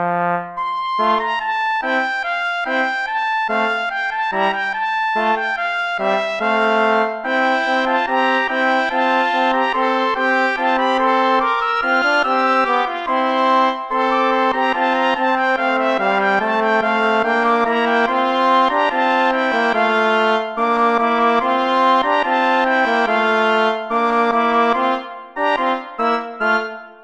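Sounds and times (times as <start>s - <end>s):
play-along backing music without trombone: 0.0s - 27.0s.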